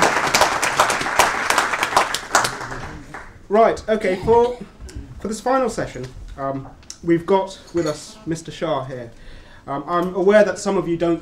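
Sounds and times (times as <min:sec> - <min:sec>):
crowd applauding: 0:00.0 - 0:03.4
speech: 0:03.5 - 0:11.2.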